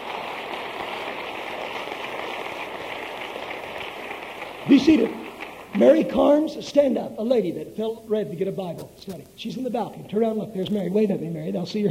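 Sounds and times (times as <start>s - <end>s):
audience applauding: 0.0s - 6.8s
speech: 4.6s - 11.8s.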